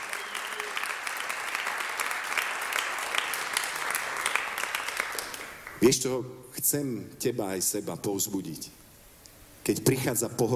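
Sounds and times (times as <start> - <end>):
audience clapping: 0.0 - 5.9
speech: 5.8 - 8.8, 9.6 - 10.5.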